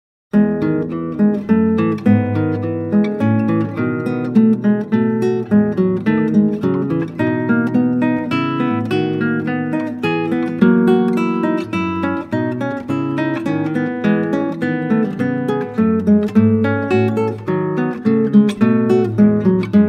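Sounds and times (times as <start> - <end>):
classical guitar: 0.3 - 19.8.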